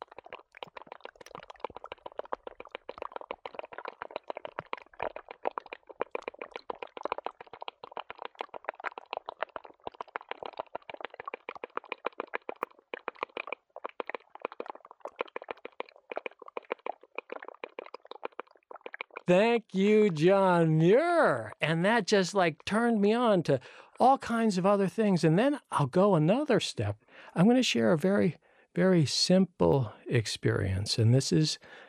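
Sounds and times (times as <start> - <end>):
meltwater crackling and dripping inside a melting snowbank on Hurricane Ridge, Olympic National Park: 0.0 - 24.5
speech: 19.3 - 31.8.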